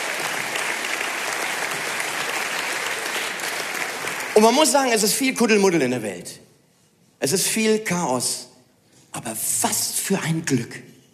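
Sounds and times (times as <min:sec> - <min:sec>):
audience applause: 0:00.0 - 0:04.5
speech: 0:04.4 - 0:06.5, 0:07.2 - 0:08.5, 0:09.2 - 0:10.9.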